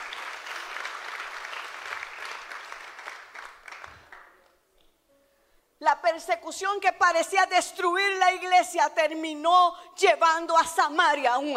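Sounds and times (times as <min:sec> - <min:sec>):
audience applauding: 0:00.0 - 0:04.6
speech: 0:06.1 - 0:11.5.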